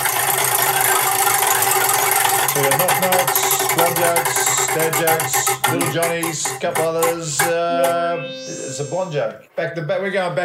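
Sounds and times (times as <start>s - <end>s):
spinning joke wheel rattling: 0.2s - 8.0s
speech: 3.0s - 10.4s.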